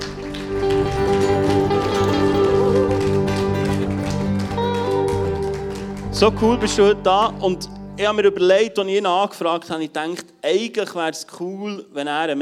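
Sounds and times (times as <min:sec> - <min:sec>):
audience applause: 0:00.0 - 0:06.7
speech: 0:06.2 - 0:12.4.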